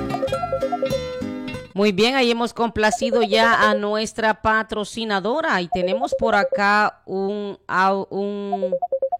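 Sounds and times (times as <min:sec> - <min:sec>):
WhatsApp incoming-call ringtone: 0:00.0 - 0:01.2, 0:02.8 - 0:04.0, 0:05.7 - 0:06.7, 0:08.5 - 0:09.1
speech: 0:01.8 - 0:09.0.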